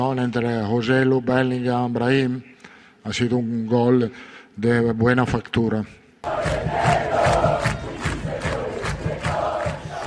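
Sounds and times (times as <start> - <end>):
speech: 0.0 - 7.4
football fans chanting and roaring in celebration of a title: 6.2 - 10.0
clapping: 6.4 - 10.0.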